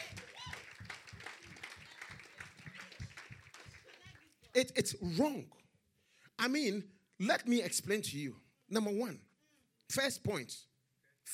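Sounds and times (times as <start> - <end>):
audience clapping: 0.0 - 4.5
speech: 4.6 - 5.6, 6.4 - 9.3, 9.9 - 10.7.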